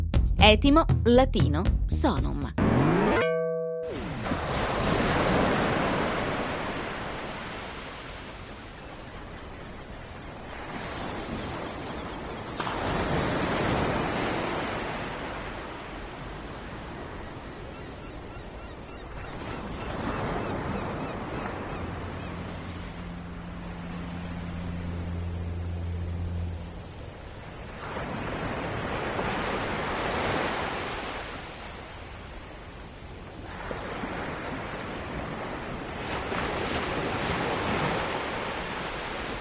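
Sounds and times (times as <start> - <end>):
speech: 0.4 - 2.9
sea waves: 3.8 - 39.3.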